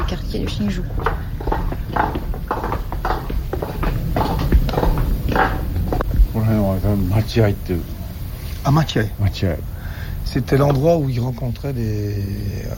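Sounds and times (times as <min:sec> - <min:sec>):
footsteps in wooden geta sandals: 0:00.0 - 0:07.6
low hum: 0:00.0 - 0:12.7
speech: 0:00.1 - 0:02.2, 0:06.8 - 0:08.0, 0:08.6 - 0:12.7.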